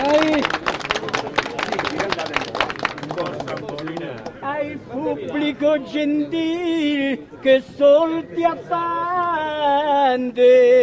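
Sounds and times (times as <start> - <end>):
speech: 0.0 - 0.6, 4.7 - 10.8
audience applause: 0.0 - 4.3
crowd voices: 0.0 - 10.8.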